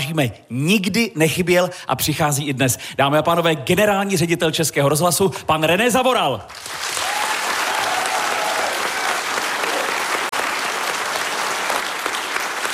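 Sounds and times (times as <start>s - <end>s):
speech: 0.1s - 7.2s
audience applauding: 6.5s - 12.7s.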